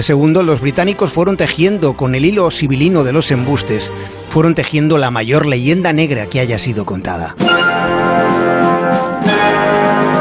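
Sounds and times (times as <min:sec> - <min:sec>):
speech: 0:00.0 - 0:08.4
opening theme music from a TV historical drama series: 0:07.4 - 0:10.1.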